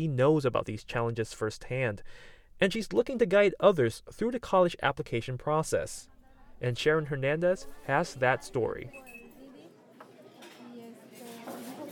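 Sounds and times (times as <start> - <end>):
speech: 0.0 - 9.1
low murmur of indistinct voices: 6.1 - 11.8
dishes and cutlery clinking in a cafe: 9.0 - 11.8.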